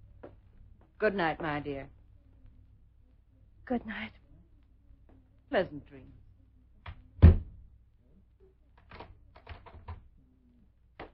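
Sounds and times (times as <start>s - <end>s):
speech: 1.0s - 2.0s, 3.7s - 4.2s, 5.5s - 6.2s
door shutting with a heavy thud: 7.2s - 7.6s.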